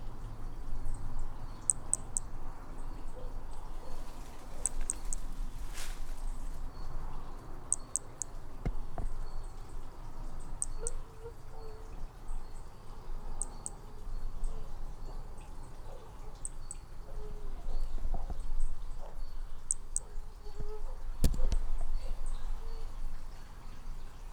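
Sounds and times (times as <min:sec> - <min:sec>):
faint insect chirps: 0:00.0 - 0:24.3
Hermogenes' toadlet clicking call: 0:01.5 - 0:03.0, 0:04.6 - 0:05.3, 0:07.7 - 0:14.6, 0:15.4 - 0:23.1.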